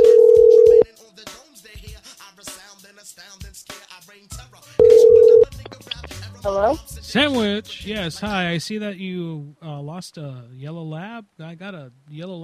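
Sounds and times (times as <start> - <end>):
ringback tone of an outgoing telephone call: 0.0 - 0.8, 4.8 - 5.5
faint voice-like sounds: 3.9 - 12.4
speech: 6.5 - 12.4.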